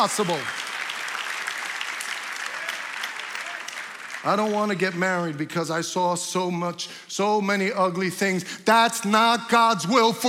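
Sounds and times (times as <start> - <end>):
speech: 0.0 - 0.6, 4.2 - 10.2
audience clapping: 0.0 - 5.5.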